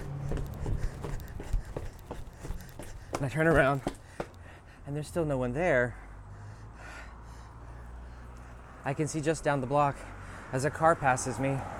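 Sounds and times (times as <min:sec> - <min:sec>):
boot footsteps: 0:00.0 - 0:04.4
speech: 0:03.2 - 0:04.0, 0:04.9 - 0:06.0, 0:08.8 - 0:11.7.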